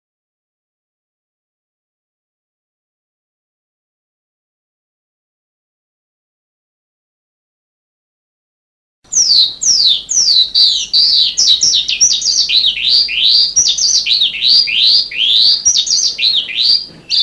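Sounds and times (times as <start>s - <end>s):
sanma bird high upslurred notes and trill: 9.1s - 17.2s.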